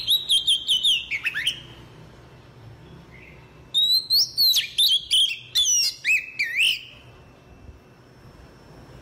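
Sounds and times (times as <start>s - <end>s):
Oriental magpie-robin song: 0.0s - 1.9s, 2.8s - 7.8s.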